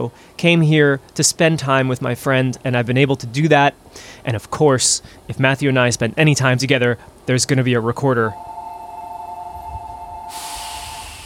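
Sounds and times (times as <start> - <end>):
speech: 0.0 - 8.6
metro train passing by: 8.3 - 11.2.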